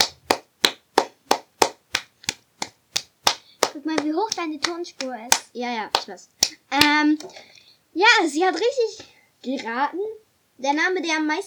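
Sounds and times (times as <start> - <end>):
applause: 0.0 - 5.4
speech: 3.8 - 11.4.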